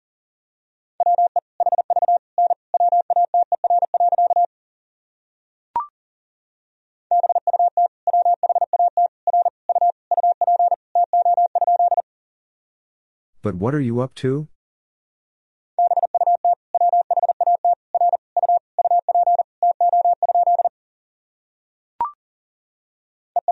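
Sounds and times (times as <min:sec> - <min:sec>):
Morse code tones at 40 wpm: 0:01.0 - 0:04.5, 0:07.1 - 0:12.0, 0:15.8 - 0:20.7
speech: 0:13.4 - 0:14.5.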